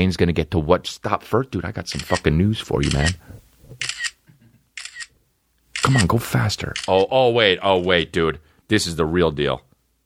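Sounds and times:
speech: 0:00.0 - 0:04.0, 0:05.8 - 0:09.7
camera shutter clicking: 0:02.0 - 0:03.2, 0:03.8 - 0:04.2, 0:04.8 - 0:05.1, 0:05.8 - 0:06.2, 0:06.8 - 0:07.0.

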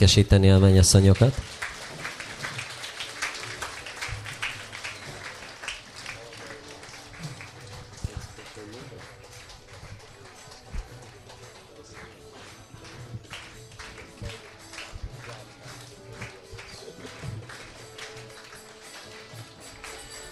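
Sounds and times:
speech: 0:00.0 - 0:01.7
applause: 0:00.6 - 0:20.3.

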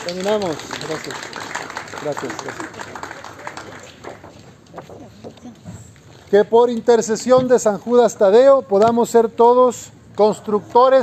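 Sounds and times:
speech: 0:00.0 - 0:03.0, 0:06.3 - 0:11.0
audience applause: 0:00.0 - 0:04.4.

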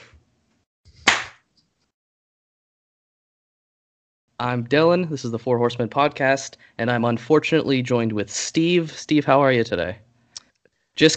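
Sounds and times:
single hand clap for recording sync: 0:01.1 - 0:01.4
speech: 0:04.4 - 0:10.0, 0:11.0 - 0:11.1.

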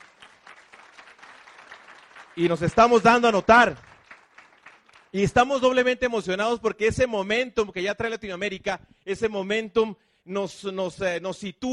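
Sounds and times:
audience applause: 0:00.0 - 0:05.4
speech: 0:02.4 - 0:03.9, 0:05.1 - 0:11.7.

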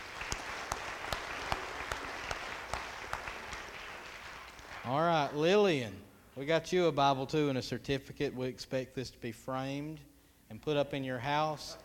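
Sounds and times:
audience applause: 0:00.0 - 0:05.2
speech: 0:04.9 - 0:11.8.

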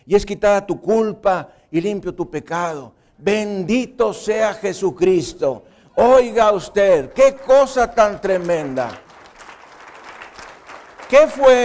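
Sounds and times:
speech: 0:00.1 - 0:09.0, 0:11.1 - 0:11.6
audience applause: 0:06.0 - 0:11.6.

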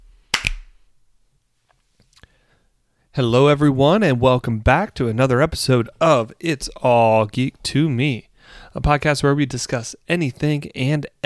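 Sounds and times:
single hand clap: 0:00.4 - 0:00.7
speech: 0:03.2 - 0:11.2.

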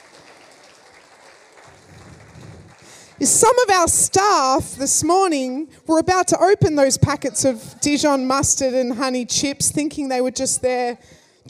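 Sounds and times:
audience clapping: 0:00.0 - 0:03.8
speech: 0:03.2 - 0:11.4.

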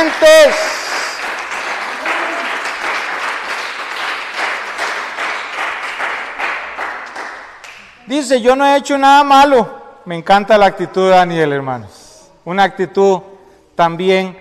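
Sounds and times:
audience clapping hands: 0:00.0 - 0:08.0
speech: 0:08.2 - 0:14.3.

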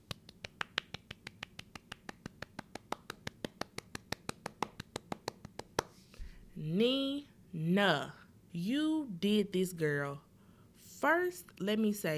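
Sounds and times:
person clapping hands: 0:00.0 - 0:06.0
speech: 0:06.6 - 0:10.2, 0:11.0 - 0:12.1.

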